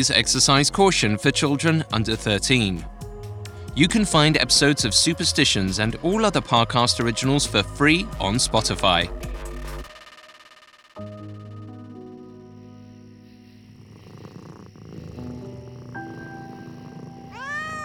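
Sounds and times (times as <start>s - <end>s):
speech: 0.0s - 3.0s, 3.8s - 9.4s
cat meowing: 17.3s - 17.8s.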